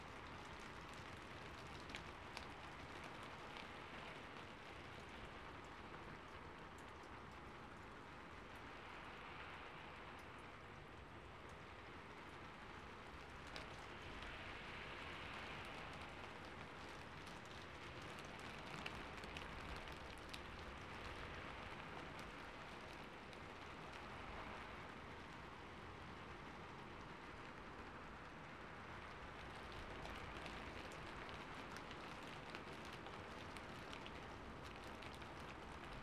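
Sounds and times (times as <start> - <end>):
rain on a rooftop: 0.0 - 36.0.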